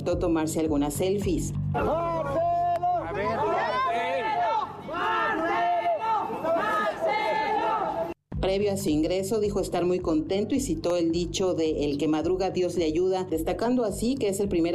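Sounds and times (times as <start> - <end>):
speech: 0.0 - 5.7, 8.5 - 14.7
supporters shouting and chanting: 1.7 - 8.2.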